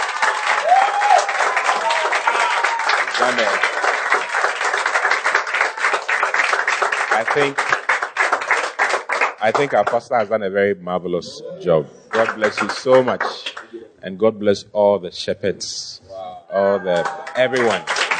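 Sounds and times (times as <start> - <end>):
audience applause: 0.0 - 10.2, 12.1 - 13.7, 16.9 - 18.1
speech: 3.2 - 3.8, 7.2 - 7.8, 9.4 - 15.8, 16.6 - 17.9.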